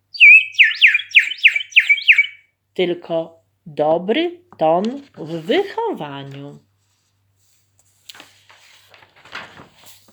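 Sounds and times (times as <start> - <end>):
clay bird whistle warbling: 0.1 - 2.5
speech: 2.8 - 6.7.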